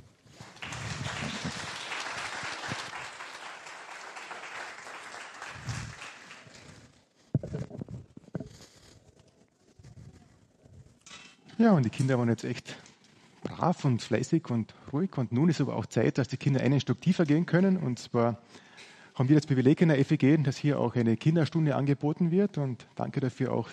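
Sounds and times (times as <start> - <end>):
audience applause: 0.0 - 6.9
speech: 11.6 - 12.9, 13.6 - 18.6, 19.2 - 23.7.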